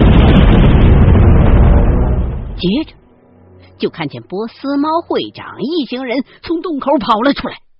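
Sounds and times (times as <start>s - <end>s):
explosion in a cave: 0.0s - 2.8s
speech: 2.6s - 3.0s, 3.8s - 7.6s.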